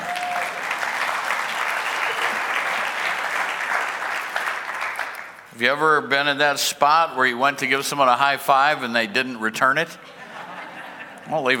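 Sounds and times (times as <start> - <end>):
audience clapping: 0.0 - 5.5
speech: 5.6 - 10.2, 11.3 - 11.5
laughter: 10.0 - 11.5.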